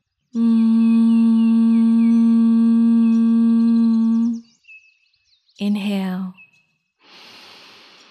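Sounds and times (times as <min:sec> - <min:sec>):
speech: 0:00.3 - 0:00.6, 0:05.6 - 0:06.2
bee breath humming on exhale: 0:00.4 - 0:04.4, 0:07.0 - 0:08.1.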